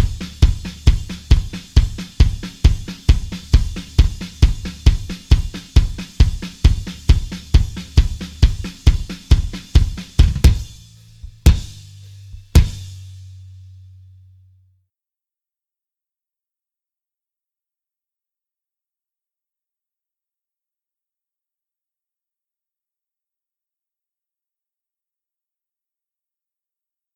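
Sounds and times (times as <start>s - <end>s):
drums: 0.0s - 14.1s.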